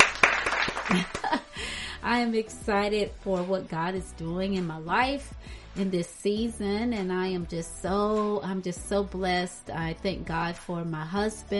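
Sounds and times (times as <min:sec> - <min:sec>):
hand clapping: 0:00.0 - 0:01.5
speech: 0:00.9 - 0:01.2, 0:02.0 - 0:11.5.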